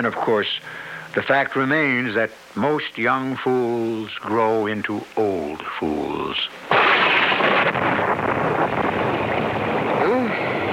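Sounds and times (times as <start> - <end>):
speech: 0.0 - 8.0
thunder in a storm: 6.7 - 10.7.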